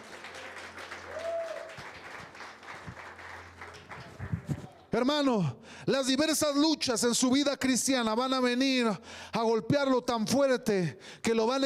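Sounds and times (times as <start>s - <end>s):
audience applause: 0.0s - 4.7s
speech: 5.0s - 11.6s.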